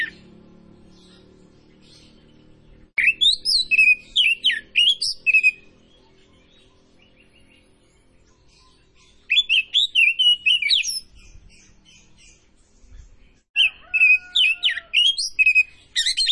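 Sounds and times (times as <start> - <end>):
Oriental magpie-robin of the Tretes form singing vigorously with whistled phrases: 3.0 - 5.6, 9.3 - 11.0, 13.6 - 16.2.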